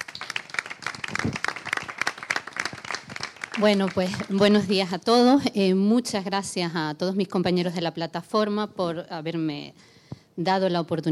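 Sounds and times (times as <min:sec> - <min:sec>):
audience applause: 0:00.0 - 0:04.4
speech: 0:03.6 - 0:11.1.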